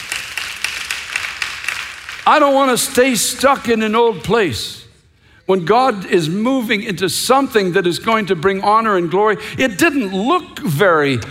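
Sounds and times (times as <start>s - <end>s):
audience clapping: 0.0s - 3.8s
speech: 2.3s - 4.8s, 5.5s - 11.2s.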